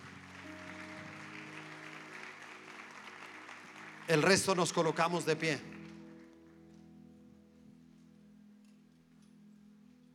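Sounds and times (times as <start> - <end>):
welcoming applause from audience: 0.0 - 6.3
speech: 4.1 - 5.7.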